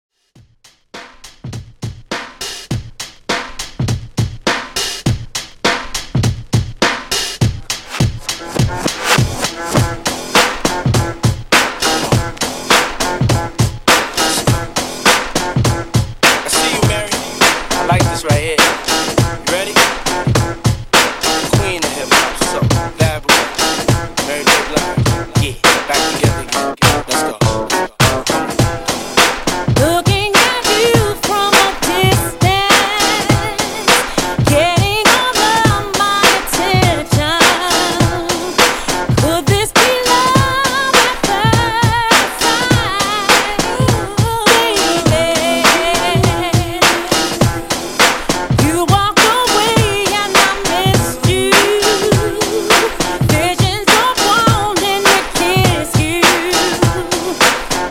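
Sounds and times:
old school drum beat at 102 bpm: 0.4 - 57.9.

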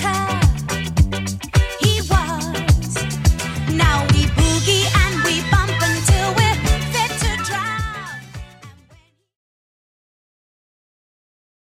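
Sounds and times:
70s music track: 0.0 - 9.0.

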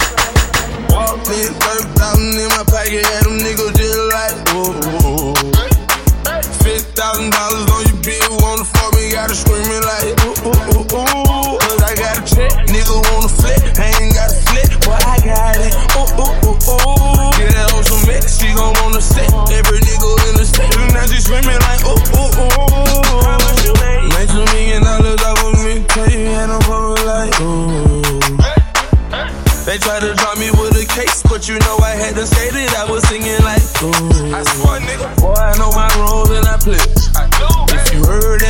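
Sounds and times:
drum machine beat, clean and dirty: 0.0 - 38.4.

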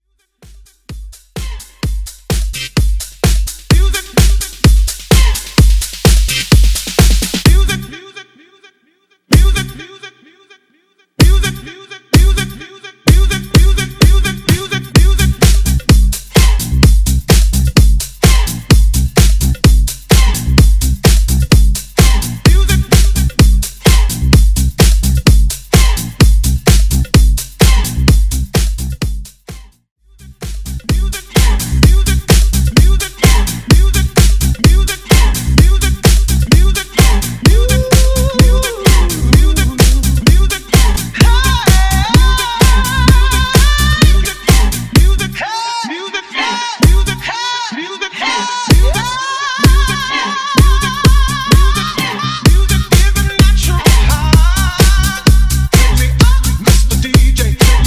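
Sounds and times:
dance mix at 128 BPM: 0.3 - 8.3, 9.3 - 9.9, 11.2 - 57.8.

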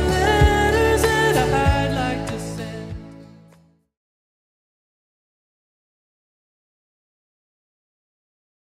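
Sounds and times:
seventies style beat: 0.0 - 3.3.

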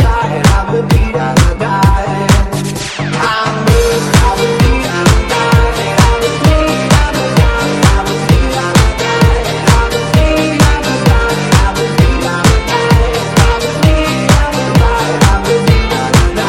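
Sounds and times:
drum loop at 130 BPM: 0.0 - 16.4.

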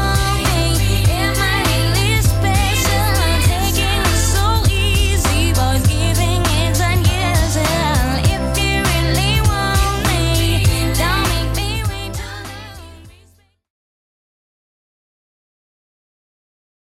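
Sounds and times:
90s Redrum drum machine beat: 0.0 - 13.0.

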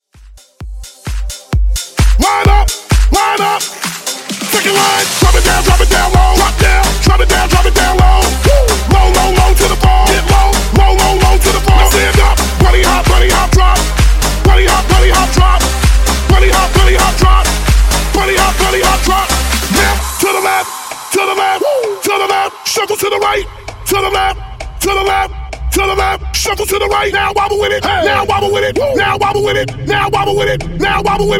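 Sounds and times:
funk bootleg music at 130 bpm: 0.3 - 31.3.

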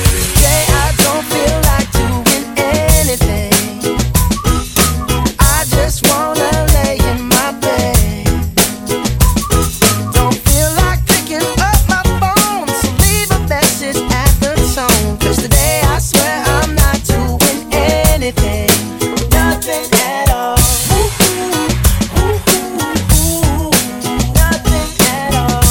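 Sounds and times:
music at 95 bpm in A-flat minor: 0.0 - 25.6.

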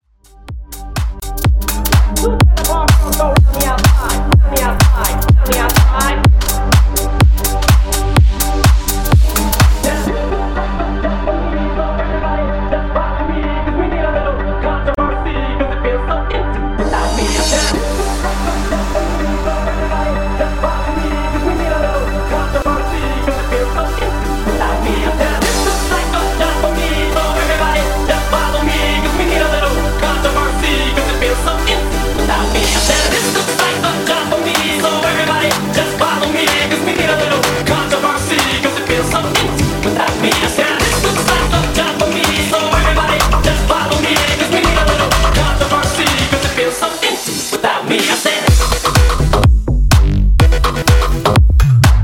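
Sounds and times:
bootleg dance music edit at 125 BPM: 0.0 - 52.0.

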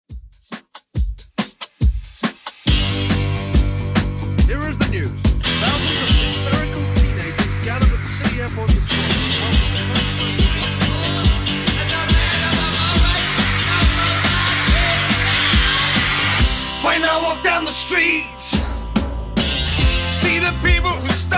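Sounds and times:
70s style Redrum drum machine beat: 0.0 - 17.2, 18.4 - 21.3.

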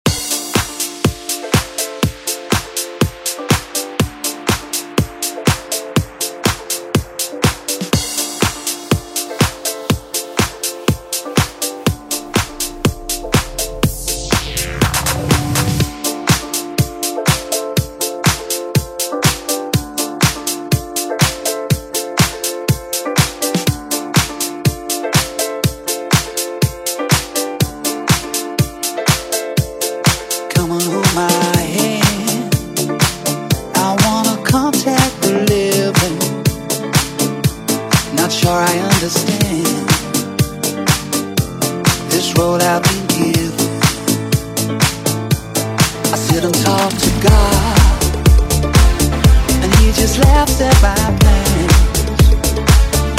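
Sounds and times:
dance music edit: 0.0 - 53.1.

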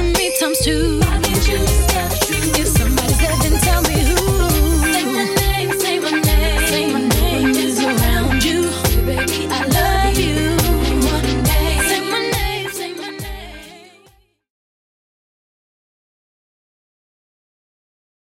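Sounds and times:
90s Rnb music: 0.0 - 13.9.

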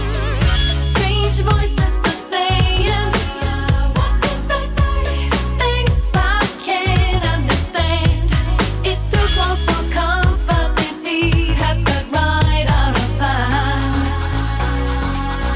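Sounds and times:
clean 90s beat: 0.0 - 15.5.

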